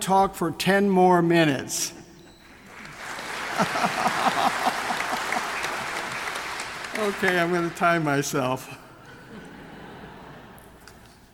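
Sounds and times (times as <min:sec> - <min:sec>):
speech: 0:00.0 - 0:02.0, 0:03.6 - 0:04.6, 0:07.0 - 0:08.8
audience clapping hands: 0:02.6 - 0:08.7
laughter: 0:02.8 - 0:07.7, 0:08.7 - 0:10.8.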